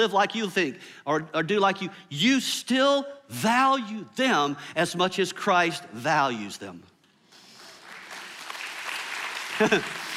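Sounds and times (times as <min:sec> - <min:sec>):
speech: 0:00.0 - 0:06.9, 0:09.6 - 0:10.0
audience clapping: 0:07.3 - 0:10.1.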